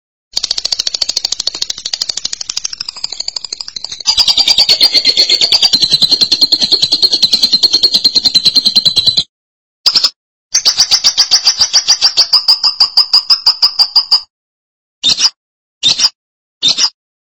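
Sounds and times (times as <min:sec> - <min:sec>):
lovebird trilling song: 0:00.4 - 0:09.3, 0:09.9 - 0:14.2.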